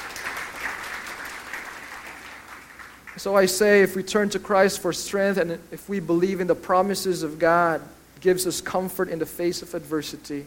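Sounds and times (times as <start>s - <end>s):
audience applause: 0.0s - 3.2s
speech: 3.2s - 10.4s.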